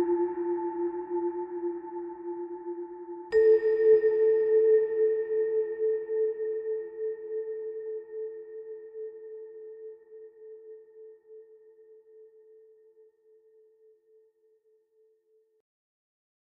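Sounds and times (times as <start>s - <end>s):
ambient melody: 0.0s - 12.2s.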